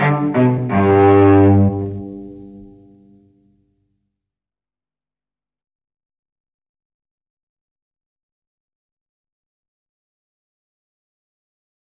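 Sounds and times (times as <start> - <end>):
solo cello gigue in G: 0.0 - 3.2.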